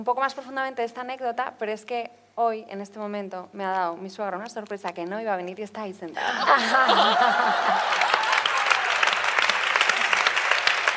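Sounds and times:
speech: 0:00.0 - 0:08.2
people chuckling: 0:06.2 - 0:08.6
audience applause: 0:06.5 - 0:10.9.

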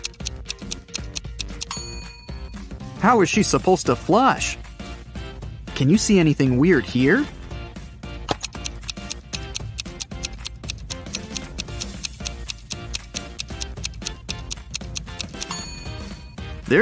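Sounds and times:
clock ticking countdown timer: 0:00.0 - 0:02.8, 0:08.4 - 0:16.7
speech: 0:03.0 - 0:04.6, 0:05.8 - 0:07.4.

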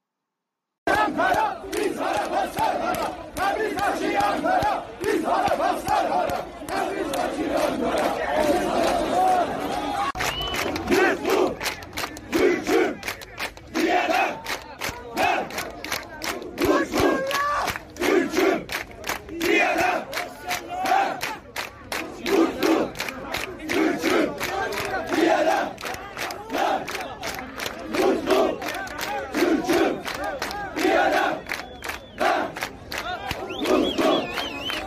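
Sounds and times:
football fans chanting: 0:00.8 - 0:34.8.

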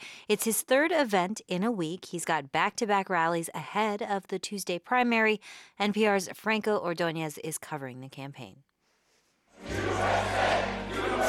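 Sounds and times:
speech: 0:00.3 - 0:08.7
crowd of voters chanting and cheering at a Donald Trump rally in New Hampshire: 0:09.6 - 0:11.2.

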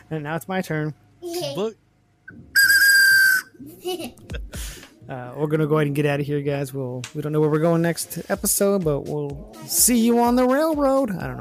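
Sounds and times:
speech: 0:00.1 - 0:02.6, 0:03.6 - 0:11.4
child blowing a toy whistle: 0:02.5 - 0:03.6.

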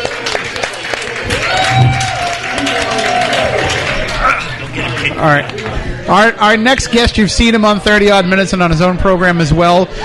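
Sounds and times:
audience applause: 0:00.0 - 0:05.4
audience cheering: 0:01.0 - 0:04.6
speech: 0:05.2 - 0:10.0.

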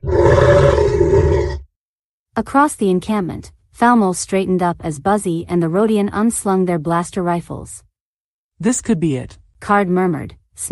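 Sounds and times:
deep rumbling animal growl: 0:00.0 - 0:01.7
speech: 0:02.4 - 0:07.9, 0:08.6 - 0:10.7.

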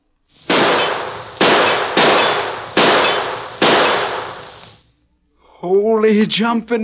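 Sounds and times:
gunshots: 0:00.4 - 0:04.8
metallic ring of bullets striking the target: 0:00.5 - 0:04.5
speech: 0:05.6 - 0:06.8.

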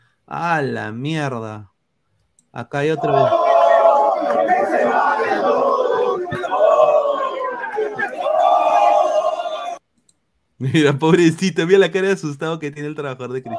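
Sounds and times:
speech: 0:00.3 - 0:01.7, 0:02.5 - 0:03.4, 0:04.3 - 0:05.9, 0:10.6 - 0:13.5
laughter: 0:03.0 - 0:09.2
football fans shouting and jeering: 0:03.0 - 0:09.8.

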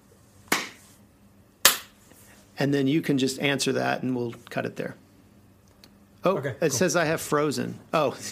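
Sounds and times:
hiss: 0:00.0 - 0:08.2
sharp hand claps for sync: 0:00.5 - 0:00.8, 0:01.6 - 0:02.0
speech: 0:02.6 - 0:05.0, 0:06.2 - 0:08.2.

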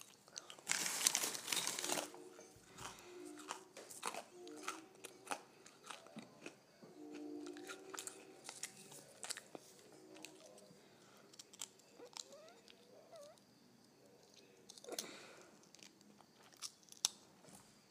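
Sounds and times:
person crunching potato chips: 0:00.0 - 0:12.8, 0:14.1 - 0:17.6
soft chewing: 0:00.0 - 0:17.6
chip bag rustling: 0:00.7 - 0:02.1.

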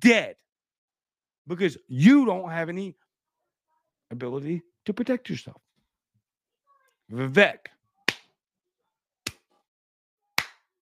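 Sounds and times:
speech: 0:00.0 - 0:00.4, 0:01.5 - 0:03.0, 0:04.1 - 0:05.6, 0:07.1 - 0:07.8
slow hand clapping: 0:08.1 - 0:08.3, 0:09.2 - 0:09.5, 0:10.4 - 0:10.7.

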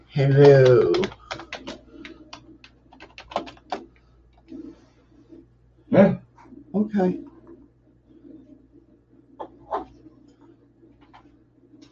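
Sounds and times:
speech: 0:00.1 - 0:01.2, 0:07.0 - 0:07.3
typing a message into a live chat on a keyboard: 0:00.4 - 0:04.4.

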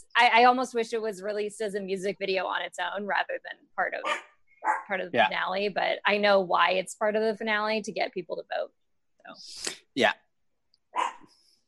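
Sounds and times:
speech: 0:00.2 - 0:10.2
pet dog barking: 0:04.0 - 0:04.9, 0:10.9 - 0:11.3.

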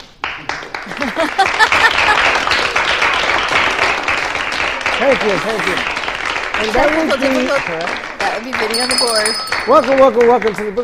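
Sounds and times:
applause: 0:00.0 - 0:10.8
speech: 0:00.4 - 0:01.6, 0:05.0 - 0:06.0, 0:06.6 - 0:10.8
laughter: 0:00.7 - 0:03.0, 0:05.0 - 0:08.4.

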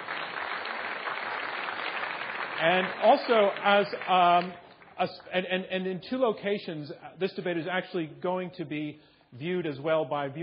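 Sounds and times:
audience applause: 0:00.0 - 0:04.5
speech: 0:02.6 - 0:10.4.

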